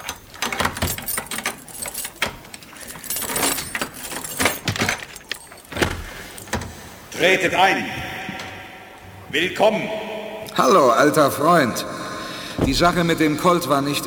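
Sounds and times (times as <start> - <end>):
key scraping and clicking in a lock: 0.0 - 7.1
metallic keys jangling: 0.0 - 7.2, 12.6 - 13.7
speech: 7.2 - 8.1, 9.3 - 10.0, 10.6 - 11.9, 12.6 - 14.0.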